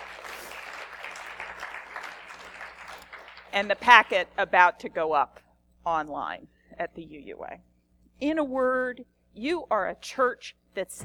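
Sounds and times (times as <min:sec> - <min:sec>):
audience applause: 0:00.0 - 0:03.9
speech: 0:03.6 - 0:11.0.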